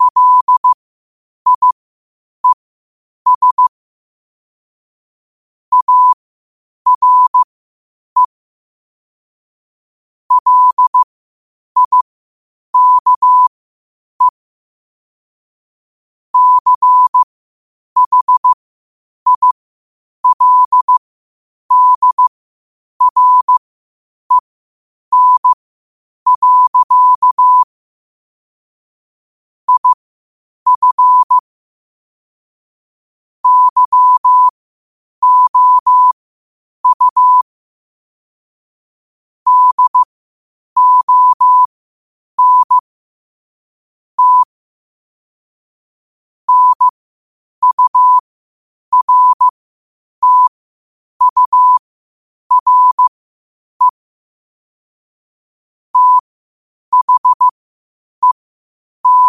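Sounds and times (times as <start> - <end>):
morse code at 5 wpm: 0.0 - 0.8, 1.5 - 1.8, 3.3 - 3.7, 5.7 - 6.2, 6.9 - 7.5, 10.3 - 11.1, 11.8 - 12.0, 12.8 - 13.5, 16.4 - 17.3, 18.0 - 18.6, 19.3 - 19.6, 20.2 - 21.0, 21.7 - 22.3, 23.0 - 23.6, 25.1 - 25.6, 26.3 - 27.7, 29.7 - 30.0, 30.7 - 31.4, 33.4 - 34.6, 35.2 - 36.2, 36.8 - 37.5, 39.5 - 40.1, 40.8 - 41.7, 42.4 - 42.8, 44.2 - 44.6, 46.5 - 46.9, 47.6 - 48.2, 48.9 - 49.6, 50.2 - 50.6, 51.2 - 51.9, 52.5 - 53.1, 56.0 - 56.3, 56.9 - 57.6, 58.2 - 58.4, 59.0 - 59.2.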